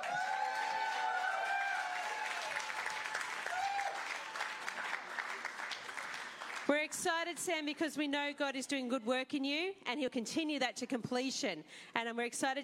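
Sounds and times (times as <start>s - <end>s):
audience cheering: 0.0s - 6.7s
speech: 6.7s - 12.6s.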